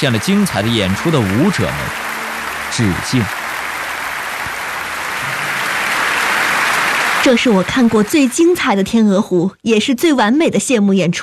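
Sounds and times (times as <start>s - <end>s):
speech: 0.0s - 2.0s, 2.7s - 3.4s, 7.2s - 11.2s
audience bursting into warm applause: 0.0s - 8.7s.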